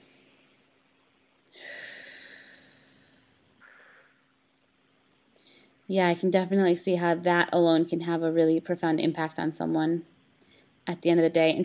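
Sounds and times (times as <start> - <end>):
deep breath: 1.5 - 4.3, 5.4 - 5.8, 10.4 - 10.8
speech: 5.9 - 10.1, 10.9 - 11.6.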